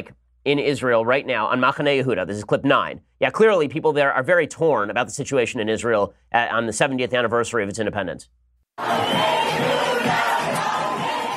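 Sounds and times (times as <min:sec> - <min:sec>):
speech: 0:00.0 - 0:10.3
thousands of people cheering in Machane Yehuda market, Jerusalem: 0:08.8 - 0:11.3.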